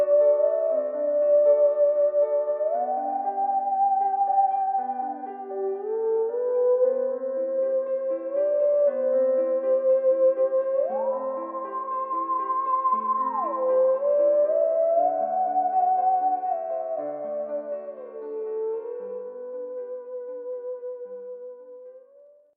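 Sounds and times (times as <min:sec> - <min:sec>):
music on unusual instruments: 0:00.0 - 0:22.3.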